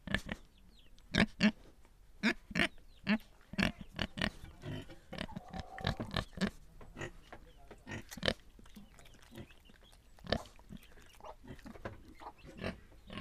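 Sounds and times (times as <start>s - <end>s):
pigs grunting and snuffling: 0.0s - 0.5s, 2.2s - 13.1s.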